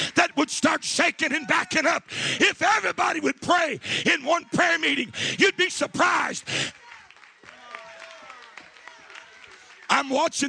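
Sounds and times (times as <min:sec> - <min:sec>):
speech: 0:00.5 - 0:06.8, 0:09.9 - 0:10.4
audience clapping unevenly: 0:06.3 - 0:10.4.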